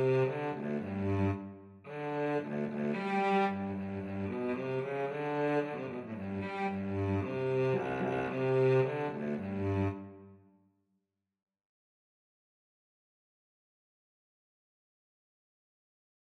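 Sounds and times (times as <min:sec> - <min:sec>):
mandolin and cello duet: 0:00.0 - 0:01.4, 0:02.4 - 0:10.0.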